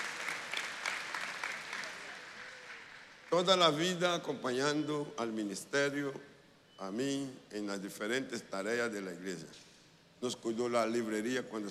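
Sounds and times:
audience applause: 0:00.0 - 0:03.1
speech: 0:03.3 - 0:11.6.

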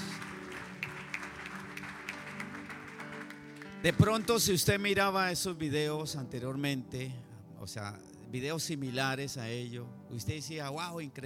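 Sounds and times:
applause: 0:00.0 - 0:05.0
speech: 0:03.8 - 0:11.2.

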